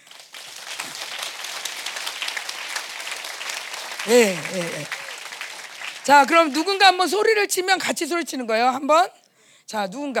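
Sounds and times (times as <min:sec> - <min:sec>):
crowd clapping: 0:00.0 - 0:07.4
speech: 0:04.0 - 0:05.0, 0:06.1 - 0:10.1.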